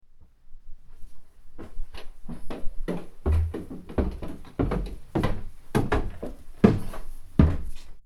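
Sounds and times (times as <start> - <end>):
footsteps on stairs: 1.6 - 8.0.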